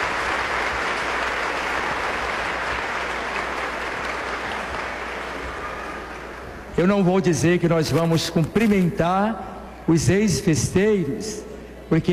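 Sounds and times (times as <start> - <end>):
applause: 0.0 - 6.7
speech: 6.8 - 12.1.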